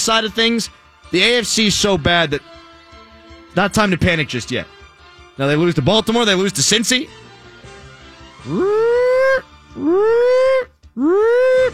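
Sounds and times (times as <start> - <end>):
speech: 0.0 - 2.6, 3.6 - 4.8, 5.4 - 7.2, 8.4 - 8.9, 9.8 - 11.7
panic meter alarm sound effect: 8.4 - 11.7.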